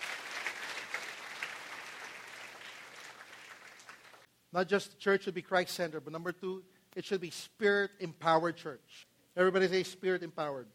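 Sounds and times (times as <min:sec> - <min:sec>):
audience applause: 0:00.0 - 0:04.3
speech: 0:04.5 - 0:10.7.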